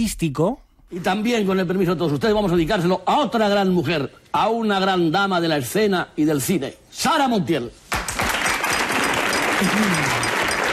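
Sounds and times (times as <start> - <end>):
speech: 0.0 - 7.8, 9.6 - 10.2
crowd applause: 7.9 - 10.7.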